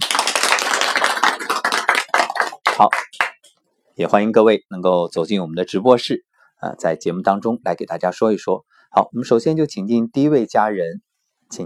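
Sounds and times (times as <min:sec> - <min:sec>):
audience applause: 0:00.0 - 0:03.4
speech: 0:02.8 - 0:03.1, 0:04.0 - 0:11.6.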